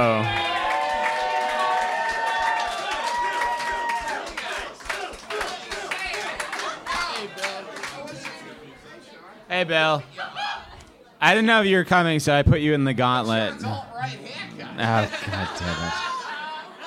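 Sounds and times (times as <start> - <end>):
live show audience clapping to welcome the next performer: 0.0 - 8.5
audience whoops: 0.1 - 4.3
speech: 9.6 - 10.4, 11.2 - 13.8, 14.8 - 16.0
laughter: 14.6 - 16.8.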